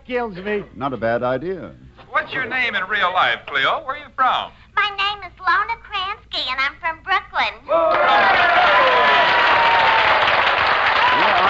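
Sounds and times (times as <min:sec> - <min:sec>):
speech: 0:00.1 - 0:09.3
audience applause: 0:07.9 - 0:11.4.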